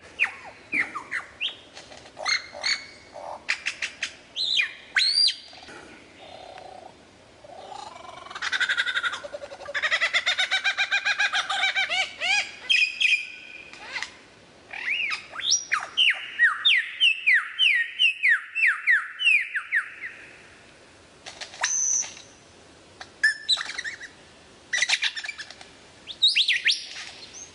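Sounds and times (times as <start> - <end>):
lyrebird song with whistles, sliding notes and trills: 0.0 - 6.6, 9.2 - 14.1, 14.7 - 20.4, 23.2 - 24.2, 24.8 - 27.5.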